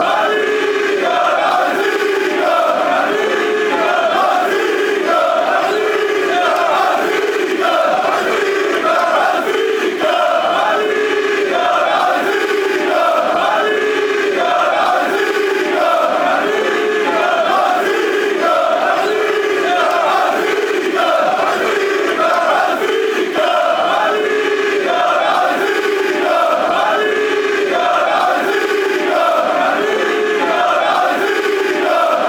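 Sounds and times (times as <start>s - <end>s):
football chants: 0.0s - 32.2s.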